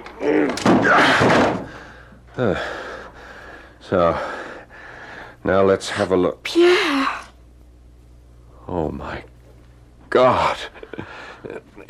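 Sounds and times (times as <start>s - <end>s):
speech: 0.2s - 1.5s, 2.4s - 2.8s, 3.9s - 4.4s, 5.4s - 6.8s, 8.8s - 9.3s, 10.1s - 11.8s
locked door being broken in: 0.4s - 1.7s.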